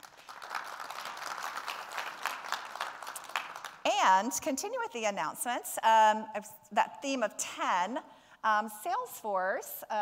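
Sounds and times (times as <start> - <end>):
audience applause: 0.0 - 3.8
speech: 3.9 - 10.0.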